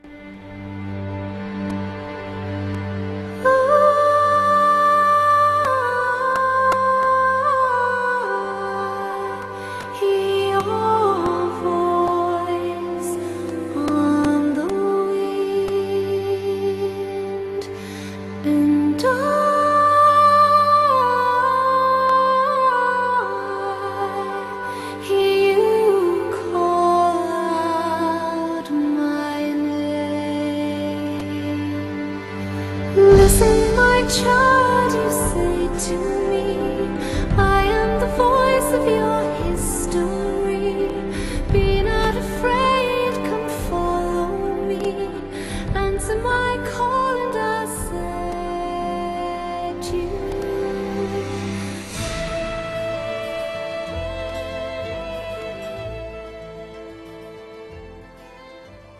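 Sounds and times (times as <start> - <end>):
celtic music: 0.0 - 58.9.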